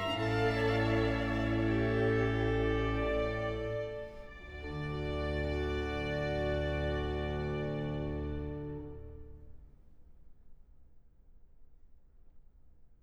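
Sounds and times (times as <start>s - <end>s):
trumpet and strings with continuo in D major adagio: 0.0s - 9.8s.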